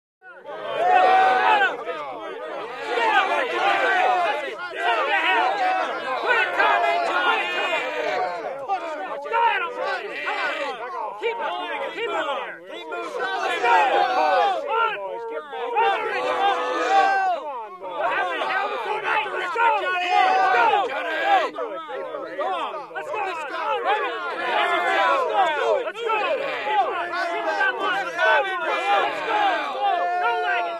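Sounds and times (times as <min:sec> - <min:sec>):
angry battle cry in a civil war battle scene: 0:00.3 - 0:30.7.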